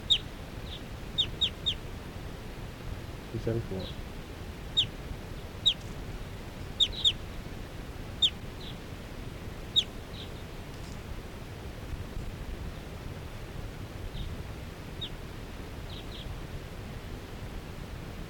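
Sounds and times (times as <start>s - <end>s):
flock of wild birds calling: 0.0s - 2.2s, 3.3s - 11.1s, 14.1s - 15.2s, 15.8s - 16.4s
steady hiss: 0.0s - 18.2s
speech: 3.4s - 4.1s.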